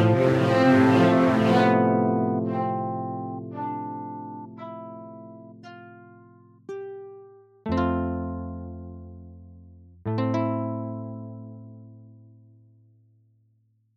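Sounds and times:
modal music: 0.0s - 7.9s.

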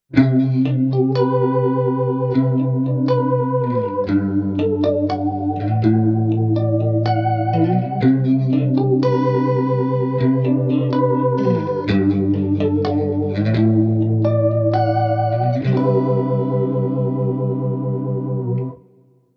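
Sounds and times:
bias vibrato ambient tone: 0.4s - 18.8s.

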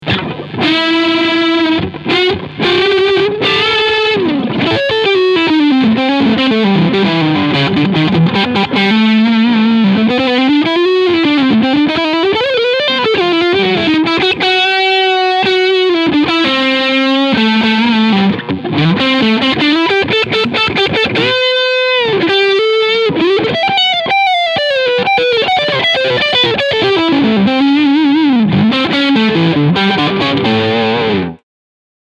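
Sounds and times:
overdriven guitar on front pickup: 0.0s - 31.4s.

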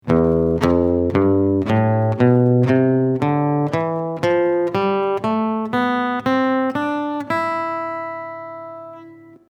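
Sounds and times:
E phrygian mode melody: 0.0s - 9.4s.

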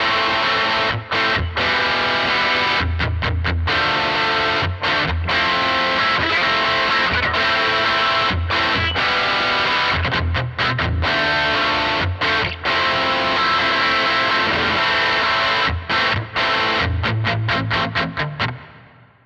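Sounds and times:
Nux MG-30 Super Reverb amplifier tone with Rat distortion: 0.0s - 19.2s.

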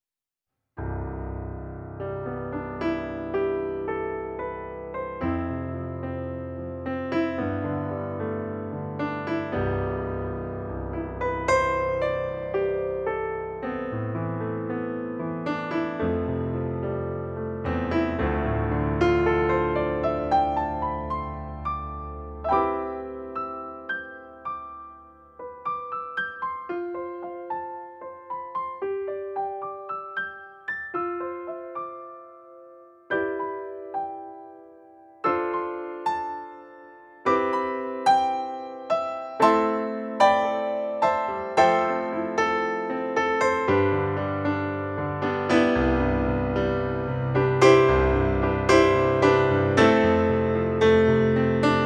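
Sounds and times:
piano: 0.8s - 51.8s.

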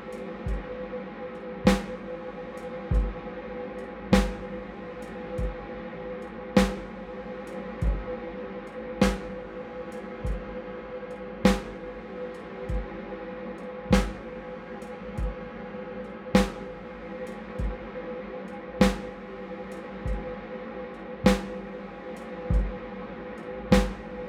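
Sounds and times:
drum: 0.5s - 0.7s, 1.7s - 2.0s, 2.9s - 3.2s, 4.2s - 4.6s, 5.4s - 5.6s, 6.6s - 7.0s, 7.8s - 8.1s, 9.0s - 9.5s, 10.3s - 10.5s, 11.5s - 12.0s, 12.7s - 13.0s, 14.0s - 14.4s, 16.4s - 16.8s, 17.6s - 17.8s, 18.8s - 19.3s, 20.0s - 20.3s, 21.3s - 21.7s, 22.5s - 22.8s, 23.8s - 24.2s.

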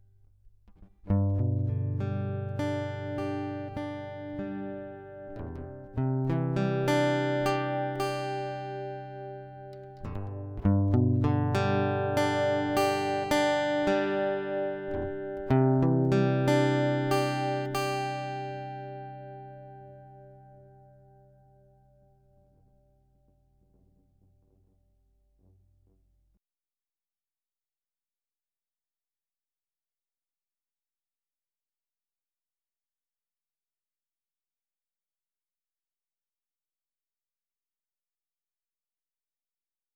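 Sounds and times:
guitar: 0.0s - 24.6s.

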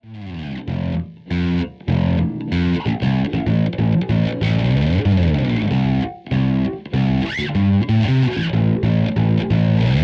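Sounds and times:
bass guitar through Zoom B2 Four effects pedal: 0.0s - 10.0s.

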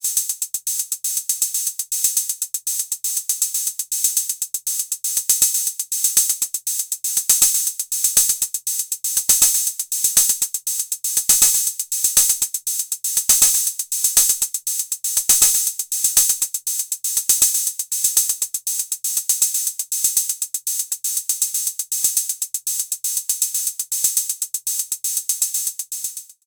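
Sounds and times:
Roland TR-06 Boutique open hi-hat: 0.0s - 26.4s
Roland TR-06 Boutique closed hi-hat: 5.2s - 26.3s.

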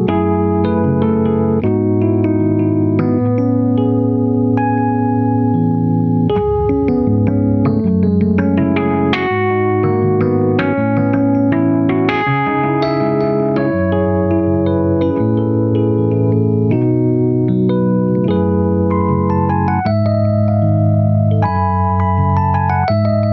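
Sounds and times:
Rhodes electric piano struck: 0.0s - 23.3s.

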